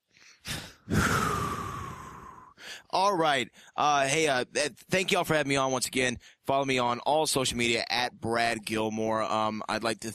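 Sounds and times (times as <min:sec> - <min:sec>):
person taking a deep breath with a sniff and long exhale: 0:00.1 - 0:02.9
speech: 0:03.0 - 0:10.1.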